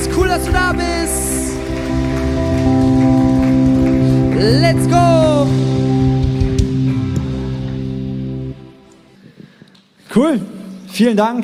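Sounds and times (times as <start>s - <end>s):
audience applause: 0.0s - 8.6s
speech: 0.4s - 1.7s, 4.4s - 5.8s, 10.2s - 11.4s.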